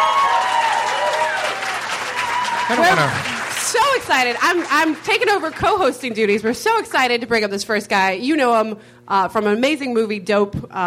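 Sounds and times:
audience applause: 0.0 - 5.9
speech: 2.7 - 10.8.

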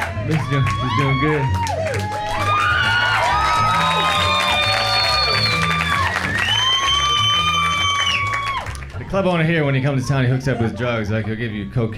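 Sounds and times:
comedy club audience clapping: 0.0 - 9.1
speech: 0.3 - 1.8, 9.1 - 11.9.

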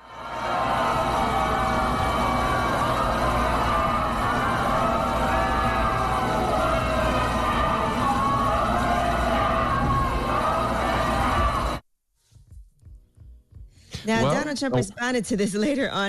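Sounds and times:
large crowd booing and chanting: 0.0 - 11.8
speech: 14.6 - 16.0.

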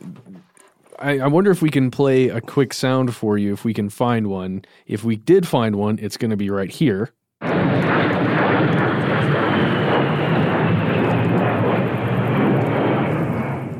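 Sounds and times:
speech: 1.0 - 7.9
A-10 Warthog jet fighter plane flying overhead: 7.4 - 13.7.

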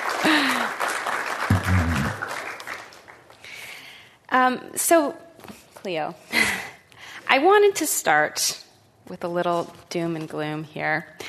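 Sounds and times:
audience applause welcoming a speaker at a Commonwealth Club event: 0.0 - 3.2
speech: 4.4 - 5.2, 5.8 - 6.4, 7.3 - 11.2.

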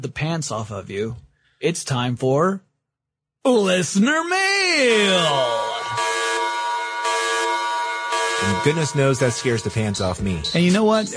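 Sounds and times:
speech: 0.0 - 2.7, 3.4 - 5.8, 8.4 - 11.1
alarm noise sound effect: 4.5 - 11.1.

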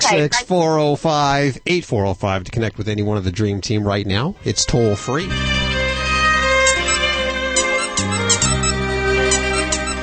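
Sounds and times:
speech: 0.1 - 5.7
violin music: 3.8 - 10.0.

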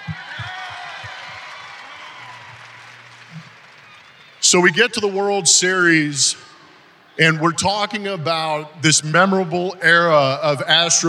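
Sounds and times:
audience applause: 0.0 - 5.2
cheers: 0.0 - 6.9
speech: 4.5 - 6.5, 7.2 - 11.0.

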